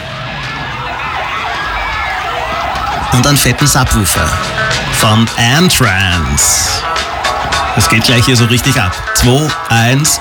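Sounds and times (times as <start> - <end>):
alarm siren added to a song: 0.0 - 10.1
speech: 3.1 - 7.1, 7.8 - 10.1.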